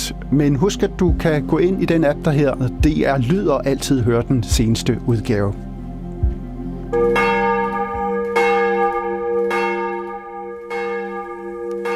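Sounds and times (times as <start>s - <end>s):
speech: 0.1s - 5.7s
church bells of Copenhagen's Church of Our Lady ringing for morning service: 6.9s - 11.9s.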